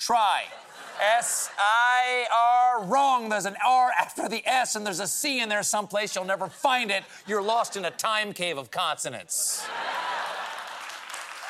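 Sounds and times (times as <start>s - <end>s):
speech: 0.0s - 10.3s
laughter: 0.2s - 2.6s, 6.2s - 8.4s, 9.3s - 11.0s
audience applause at a comedy show: 9.8s - 11.4s.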